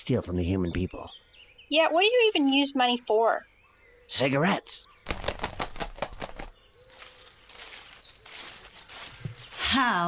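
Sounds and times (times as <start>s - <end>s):
speech: 0.0s - 3.5s, 4.1s - 4.9s, 9.7s - 10.0s
owl flapping wings in flight: 5.0s - 9.6s
faint rustling noise: 5.2s - 10.0s.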